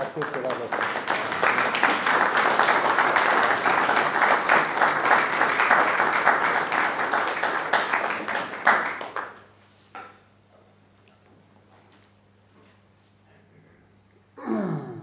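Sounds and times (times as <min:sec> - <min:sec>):
audience applause: 0:00.0 - 0:09.4.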